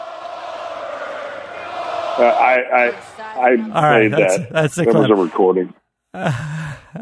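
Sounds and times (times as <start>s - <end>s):
arena crowd chanting: 0.0s - 5.4s
laughter: 2.2s - 6.9s
speech: 2.2s - 6.9s.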